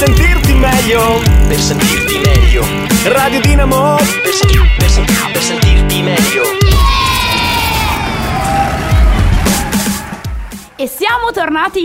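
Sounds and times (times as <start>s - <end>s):
speech: 0.9s - 6.6s, 10.8s - 11.8s
crowd cheering and shouting: 6.6s - 10.9s.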